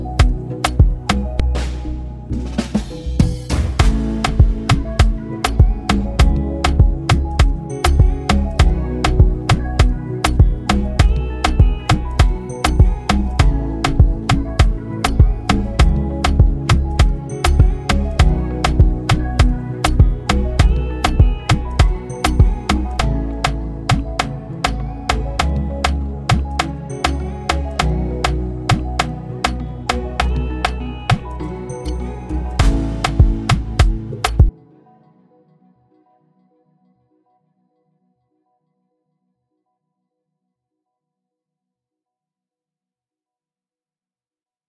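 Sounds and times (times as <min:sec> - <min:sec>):
afrobeat instrumental beat: 0:00.0 - 0:34.5.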